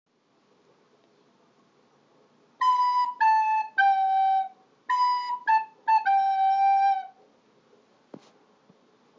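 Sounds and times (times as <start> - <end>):
recorder: 2.6 - 8.4.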